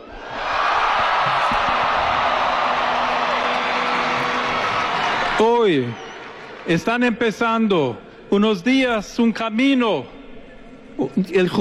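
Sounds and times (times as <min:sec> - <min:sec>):
crowd of young people shouting and cheering: 0:00.0 - 0:07.6
speech: 0:05.4 - 0:10.2, 0:11.0 - 0:11.5.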